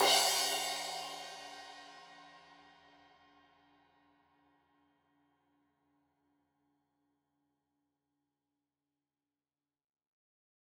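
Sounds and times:
15 inch crash cymbal edge hit: 0:00.0 - 0:01.9.

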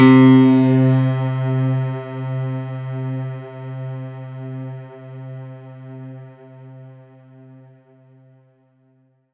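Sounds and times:
synth note C3: 0:00.0 - 0:06.8.

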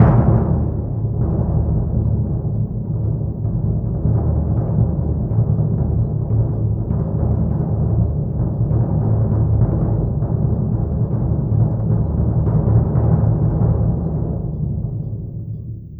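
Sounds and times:
orchestral bass drum: 0:00.0 - 0:14.2.

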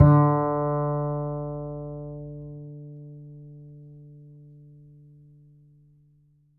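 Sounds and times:
upright acoustic bass: 0:00.0 - 0:04.9.

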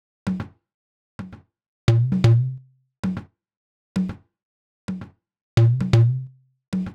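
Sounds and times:
lounge house percussion loop: 0:01.9 - 0:03.2, 0:05.6 - 0:06.9.

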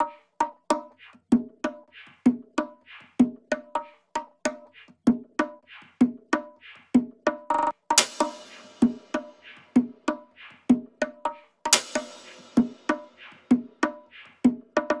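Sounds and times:
percussion loop: 0:00.0 - 0:14.9.

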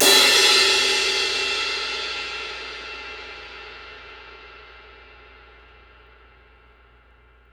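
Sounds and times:
cymbal hit: 0:00.0 - 0:06.6.

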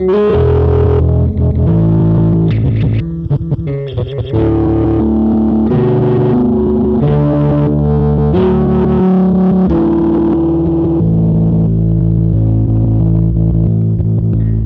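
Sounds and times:
processed electric bass: 0:00.0 - 0:14.6.

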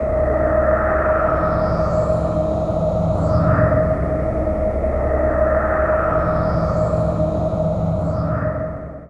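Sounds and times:
dark hall ambience: 0:00.0 - 0:09.0.

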